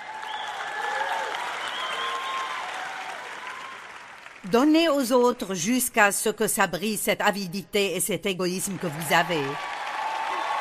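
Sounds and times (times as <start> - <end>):
people calling out and cheering: 0.0 - 4.4, 8.8 - 10.6
large audience applause: 0.0 - 4.5, 8.8 - 10.6
speech: 4.4 - 9.7.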